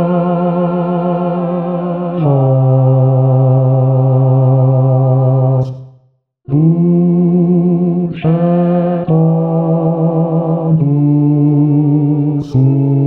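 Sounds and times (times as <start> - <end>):
bass voice singing a chant: 0.0 - 5.8, 6.5 - 13.0.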